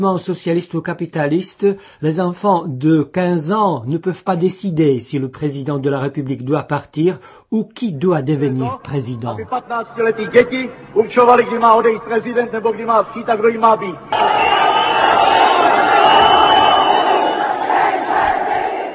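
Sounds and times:
speech: 0.0s - 14.5s
crowd whistling and shouting: 13.8s - 18.9s.

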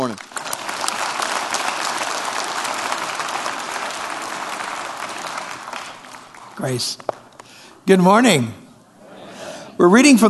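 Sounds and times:
church congregation applauding: 0.0s - 7.6s
speech: 6.6s - 7.1s, 7.9s - 8.6s, 9.8s - 10.2s.

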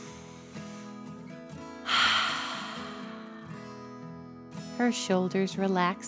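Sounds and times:
little girl breathing deeply in and out on a beanbag: 1.9s - 3.8s
speech: 4.8s - 6.0s.

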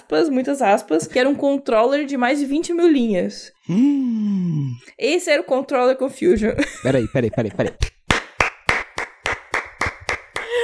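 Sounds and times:
speech: 0.1s - 7.9s
laughter: 6.6s - 7.9s
hand clapping: 7.8s - 10.6s.

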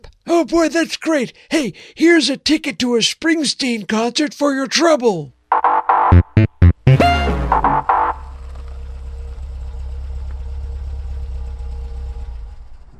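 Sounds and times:
speech: 0.3s - 5.4s, 6.1s - 7.0s
car engine cranking, revving and idling: 7.4s - 12.9s.

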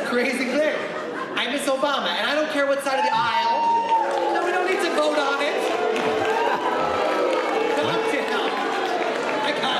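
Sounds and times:
speech: 0.1s - 3.8s
large audience booing: 3.0s - 9.7s.

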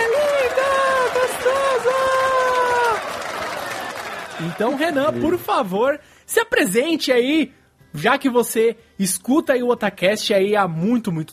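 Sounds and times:
cheering: 0.0s - 5.4s
applause: 0.0s - 5.7s
speech: 4.4s - 11.3s.

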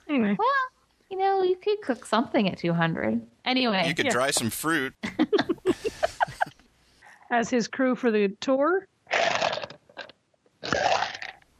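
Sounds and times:
speech: 1.6s - 5.1s, 7.3s - 9.3s
laughter: 3.8s - 6.5s
person slurping iced tea from a glass: 9.1s - 11.4s.

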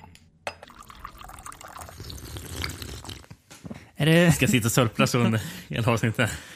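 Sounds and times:
coffee pouring into cups: 0.6s - 3.3s
speech: 4.0s - 6.5s.

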